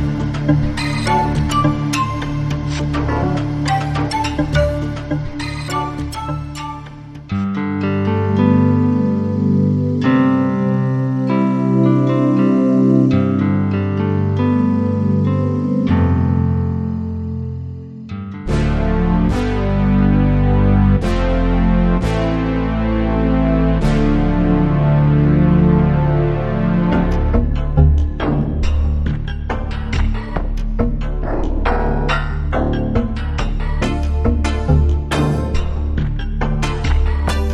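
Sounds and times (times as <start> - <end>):
Wavestation synthesizer: 0.0 - 37.5.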